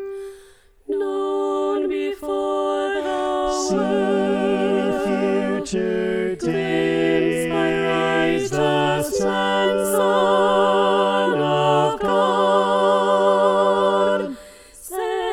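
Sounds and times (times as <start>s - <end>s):
alto choir part singing: 0.2s - 15.3s.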